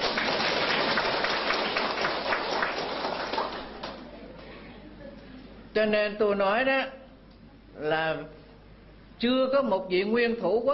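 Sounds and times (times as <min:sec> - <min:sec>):
audience applauding a speaker at a public address: 0:00.0 - 0:04.0
speech: 0:05.8 - 0:07.0, 0:07.8 - 0:08.4, 0:09.2 - 0:10.7.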